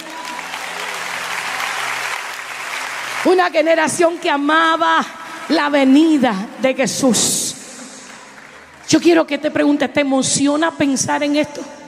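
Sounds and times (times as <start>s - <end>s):
audience applause: 0.0s - 6.2s, 8.1s - 8.8s
speech: 3.2s - 7.6s, 8.9s - 11.8s.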